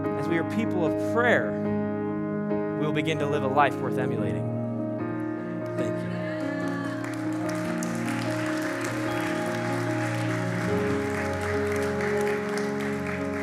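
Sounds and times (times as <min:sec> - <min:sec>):
speech: 0:00.2 - 0:01.7, 0:02.8 - 0:04.5
sustained musical tones: 0:02.8 - 0:13.4
audience applause: 0:05.8 - 0:13.4.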